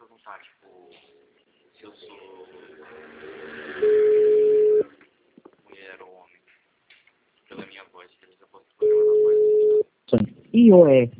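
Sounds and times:
faint noise: 0.0s - 11.1s
speech: 0.3s - 1.2s, 1.8s - 4.0s, 10.6s - 11.1s
telephone tone while a call is placed: 3.8s - 4.9s, 8.8s - 9.8s.

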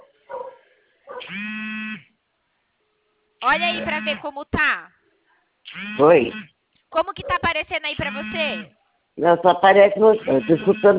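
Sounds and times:
mobile phone vibrating: 1.2s - 2.1s, 3.6s - 4.3s, 5.7s - 6.5s, 8.0s - 8.7s, 10.2s - 10.9s
speech: 1.3s - 1.6s, 3.4s - 5.0s, 5.7s - 10.9s.

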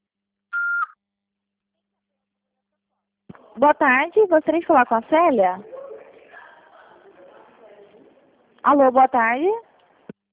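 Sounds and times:
voicemail beep on a phone line: 0.6s - 0.9s
speech: 3.6s - 5.7s, 8.7s - 9.7s.

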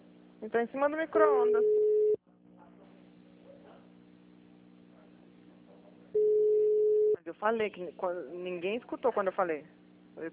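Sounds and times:
speech: 0.4s - 1.9s, 7.3s - 10.3s
telephone ringback tone: 1.5s - 2.2s, 6.2s - 7.2s.

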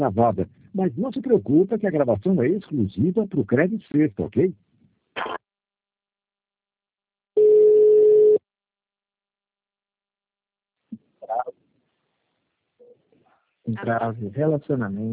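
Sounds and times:
speech: 0.0s - 4.6s, 13.7s - 15.1s
telephone tone while a call is transferred to the CredSexta customer relationship line: 7.4s - 8.4s.

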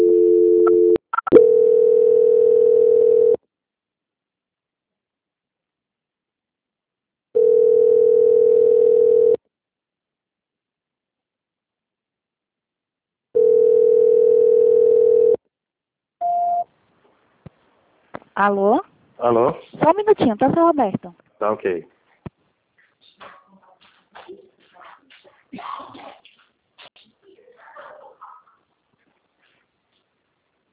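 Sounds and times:
telephone call transfer tone: 0.0s - 3.4s, 7.4s - 9.4s, 13.4s - 15.4s
speech: 18.4s - 21.9s.

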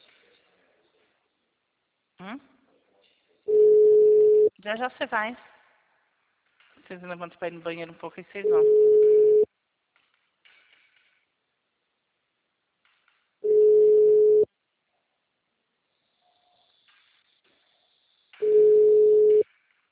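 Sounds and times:
speech: 2.2s - 2.6s, 4.6s - 5.5s, 6.9s - 8.9s
telephone ringback tone before voicemail: 3.5s - 4.5s, 8.5s - 9.5s, 13.4s - 14.5s, 18.4s - 19.4s.

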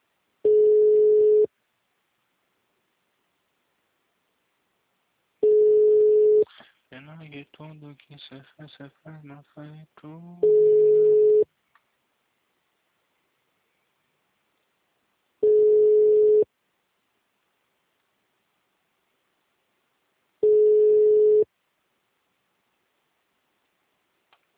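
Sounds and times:
telephone busy signal: 0.5s - 1.5s, 5.4s - 6.4s, 10.4s - 11.4s, 15.4s - 16.5s, 20.4s - 21.4s
speech: 7.3s - 11.3s.

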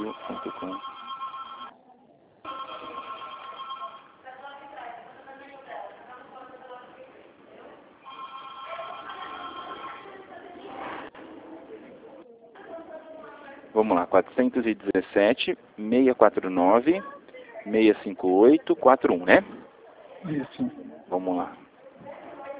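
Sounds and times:
telephone ringing: 0.0s - 1.8s, 2.4s - 4.2s, 8.0s - 10.3s
speech: 13.8s - 19.6s, 20.2s - 21.6s.

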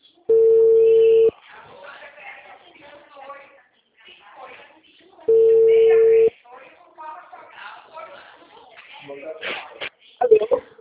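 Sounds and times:
telephone ringing unanswered: 0.3s - 1.3s, 5.3s - 6.3s.

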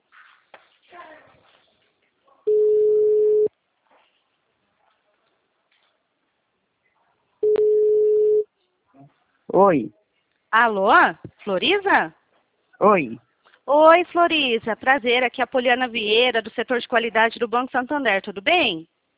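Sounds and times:
outgoing telephone call ringing tone: 2.5s - 3.5s, 7.4s - 8.4s
speech: 9.6s - 12.2s, 12.8s - 18.9s.

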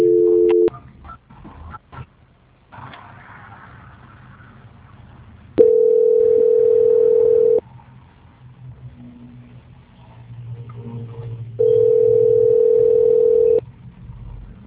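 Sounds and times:
two-note telephone tone during a call transfer: 0.0s - 0.7s, 5.6s - 7.6s, 11.6s - 13.6s.

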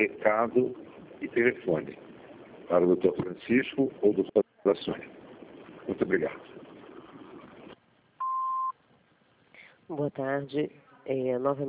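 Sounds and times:
speech: 0.0s - 2.1s, 2.7s - 5.2s, 5.9s - 6.6s, 9.9s - 11.6s
answering machine electronic beep: 8.2s - 8.7s.

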